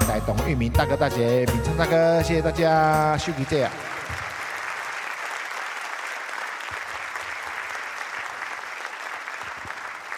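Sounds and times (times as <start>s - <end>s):
speech: 0.1s - 3.9s
audience applause: 3.2s - 10.1s.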